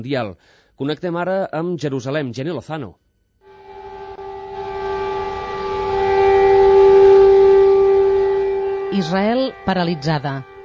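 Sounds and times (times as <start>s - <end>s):
speech: 0.0s - 3.0s, 8.9s - 10.5s
air raid sirens in Jerusalem: 3.4s - 10.6s.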